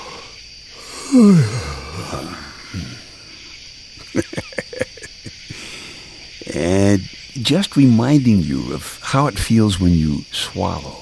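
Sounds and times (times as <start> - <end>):
person yawning: 0.0 - 3.3
speech: 1.2 - 3.0, 7.5 - 10.9
laughter: 4.0 - 5.9.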